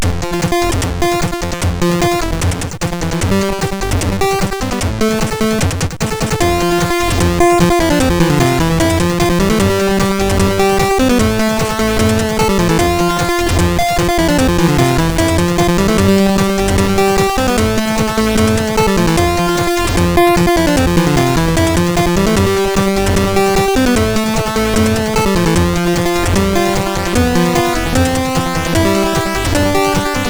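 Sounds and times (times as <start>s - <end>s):
MOS 6581R2 SID chip music: 0.0s - 30.2s.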